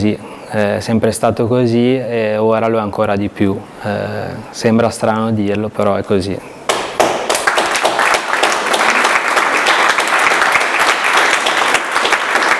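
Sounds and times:
speech: 0.0 - 6.6
loud applause from audience: 6.7 - 12.5.

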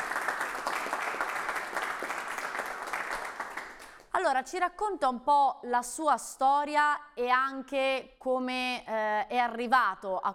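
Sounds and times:
applause: 0.0 - 4.1
speech: 4.3 - 10.3.

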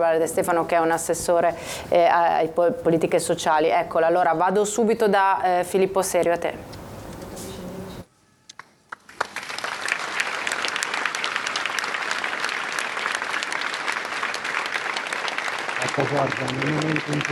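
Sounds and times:
speech: 0.0 - 6.8, 16.2 - 17.2
applause from the editorial community: 8.5 - 17.2.

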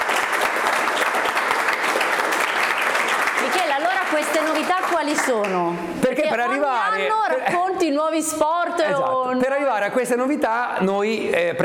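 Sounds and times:
audience applause: 0.0 - 5.7
speech: 4.2 - 11.6.

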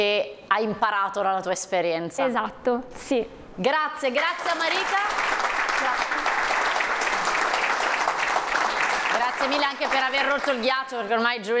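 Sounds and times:
speech: 0.0 - 6.3, 9.2 - 11.5
crowd applauding: 4.2 - 10.8.

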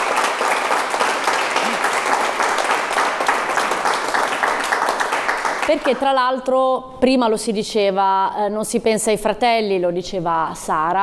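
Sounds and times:
audience applause: 0.0 - 6.0
speech: 5.7 - 11.0.

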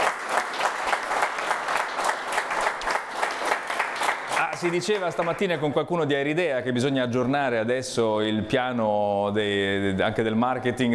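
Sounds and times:
audience applause: 0.0 - 5.6
speech: 4.6 - 10.9.

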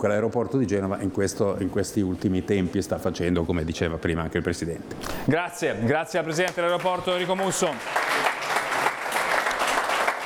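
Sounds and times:
speech: 0.0 - 8.0
audience applause at an event: 6.6 - 10.2.

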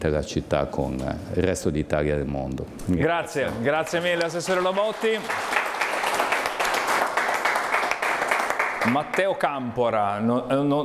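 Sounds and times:
speech: 0.0 - 5.6, 8.9 - 10.8
audience applause: 3.4 - 9.3.

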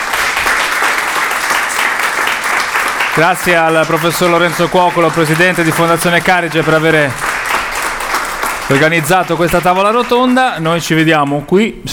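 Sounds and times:
audience applause at the close of a roundtable event: 0.0 - 11.5
speech: 3.2 - 7.3, 8.7 - 11.9.

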